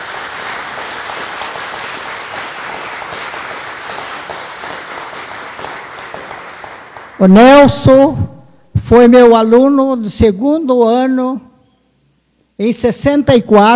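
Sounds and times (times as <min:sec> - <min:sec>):
applause: 0:00.0 - 0:07.4
speech: 0:07.2 - 0:11.5, 0:12.6 - 0:13.7.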